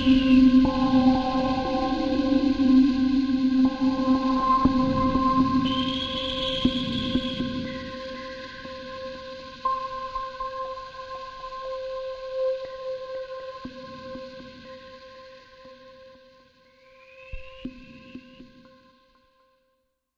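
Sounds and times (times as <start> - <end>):
space tone sci-fi ambience: 0.0 - 8.5.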